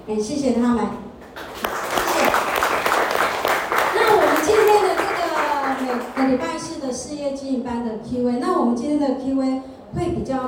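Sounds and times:
speech: 0.1s - 1.1s, 6.3s - 10.4s
audience applause: 1.4s - 6.5s.

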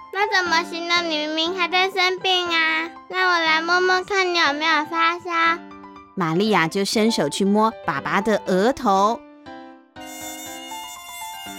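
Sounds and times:
speech: 0.2s - 9.2s
mosquito buzzing: 10.0s - 11.5s.

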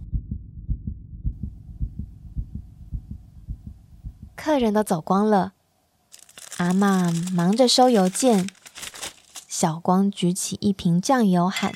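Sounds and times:
pounding heartbeat: 0.0s - 4.4s
speech: 4.4s - 5.6s, 6.6s - 8.6s, 9.6s - 11.7s.

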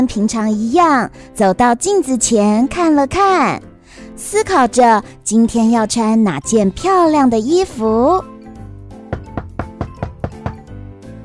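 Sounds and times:
speech: 0.0s - 8.3s
knocking on a door: 9.0s - 11.2s.

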